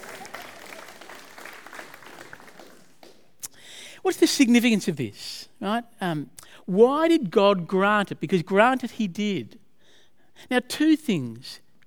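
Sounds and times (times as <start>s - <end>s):
audience applause: 0.0s - 3.3s
speech: 4.1s - 9.6s, 10.4s - 11.8s.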